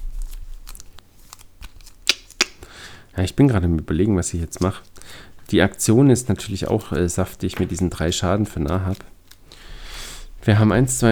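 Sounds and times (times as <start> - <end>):
playing cards drawn in a card game: 0.1 - 2.7, 4.5 - 9.7
speech: 3.2 - 9.1, 10.4 - 11.0.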